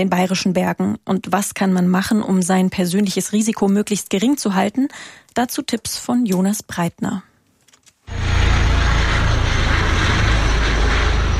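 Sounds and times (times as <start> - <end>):
speech: 0.0 - 7.3
helicopter flying overhead: 8.1 - 11.3.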